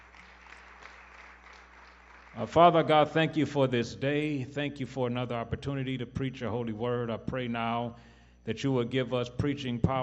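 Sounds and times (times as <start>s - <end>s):
audience hand clapping in praise: 0.0s - 2.9s
speech: 2.4s - 10.0s.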